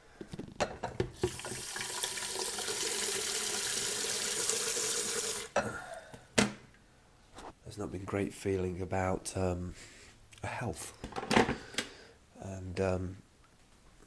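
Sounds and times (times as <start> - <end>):
filling a kettle from the tap: 1.2 - 5.5
speech: 7.8 - 11.7, 12.8 - 13.2.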